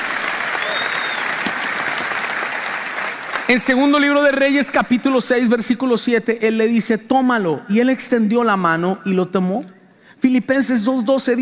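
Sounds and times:
loud applause: 0:00.0 - 0:03.6
speech: 0:03.5 - 0:11.3.

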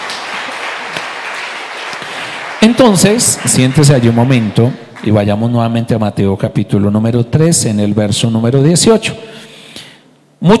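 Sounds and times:
crowd applauding: 0:00.0 - 0:05.2
speech: 0:02.6 - 0:09.4.

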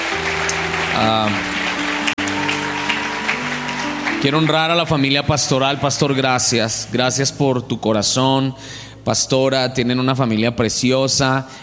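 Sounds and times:
audience applause: 0:00.0 - 0:06.9
sustained keyboard chords: 0:00.0 - 0:07.9
speech: 0:01.0 - 0:01.5, 0:04.2 - 0:11.6.

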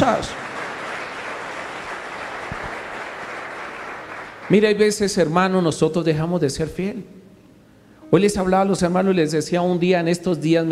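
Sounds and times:
speech: 0:00.0 - 0:00.4, 0:04.5 - 0:07.2, 0:08.1 - 0:10.7
audience applauding: 0:00.0 - 0:04.9.

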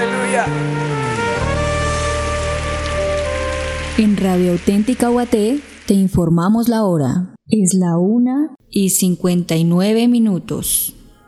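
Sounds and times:
audience applauding: 0:00.0 - 0:06.1
speech: 0:00.4 - 0:00.7, 0:04.0 - 0:11.0.

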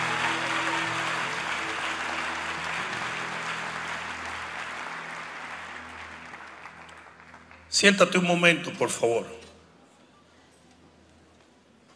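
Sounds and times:
audience applause: 0:00.0 - 0:07.8
speech: 0:07.7 - 0:09.4.

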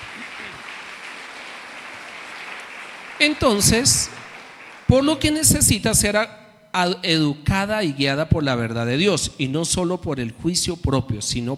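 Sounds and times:
audience applause: 0:00.0 - 0:05.3
speech: 0:03.2 - 0:04.2, 0:04.9 - 0:11.5.

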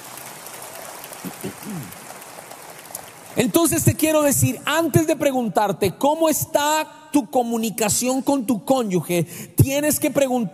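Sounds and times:
audience applause: 0:00.0 - 0:03.5
speech: 0:01.2 - 0:02.1, 0:03.4 - 0:10.5.

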